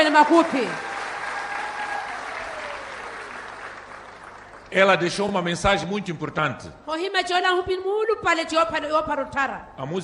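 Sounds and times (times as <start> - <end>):
speech: 0.0 - 0.9, 4.7 - 10.0
crowd applauding: 0.0 - 5.4.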